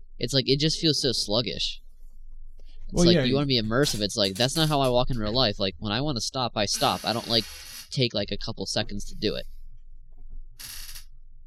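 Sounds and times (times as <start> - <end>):
speech: 0.2 - 1.8, 2.9 - 9.5, 10.6 - 10.8
chair squeaking: 6.8 - 7.9, 10.6 - 11.0.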